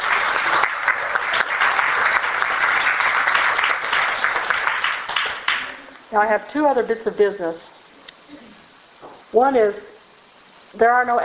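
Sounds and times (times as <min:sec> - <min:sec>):
audience applause: 0:00.0 - 0:05.9
speech: 0:06.1 - 0:07.8, 0:09.3 - 0:09.9, 0:10.7 - 0:11.2.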